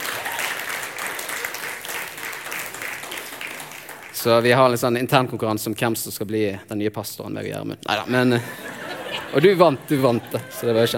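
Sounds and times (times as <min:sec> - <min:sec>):
applause: 0:00.0 - 0:04.5
speech: 0:04.2 - 0:08.7, 0:09.3 - 0:10.9
laughter: 0:08.0 - 0:10.9.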